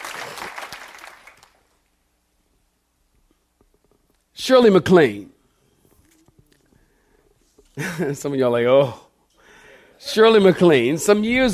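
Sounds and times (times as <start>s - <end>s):
audience clapping hands: 0.0s - 1.9s
speech: 4.4s - 5.3s, 8.0s - 9.0s, 10.0s - 11.5s.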